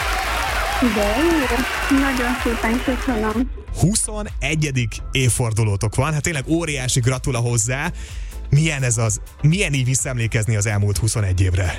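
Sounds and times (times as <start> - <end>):
applause: 0.0 - 3.5
speech: 0.8 - 11.7.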